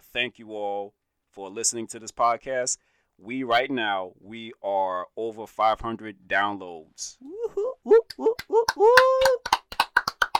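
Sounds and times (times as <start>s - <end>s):
speech: 0.1s - 9.4s
hands clapping: 8.0s - 10.3s.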